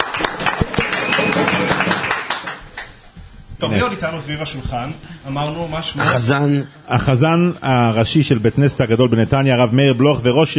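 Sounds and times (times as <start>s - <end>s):
small group clapping: 0.0s - 3.1s
speech: 3.6s - 10.5s.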